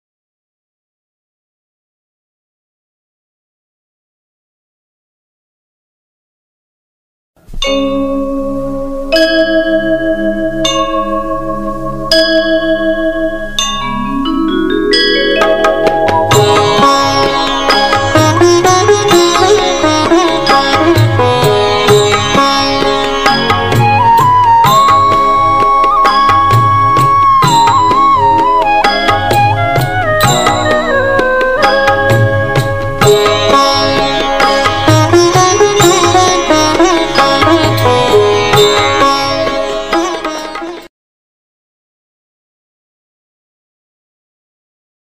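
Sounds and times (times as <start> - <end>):
devotional instrumental ringtone: 7.6 - 40.7.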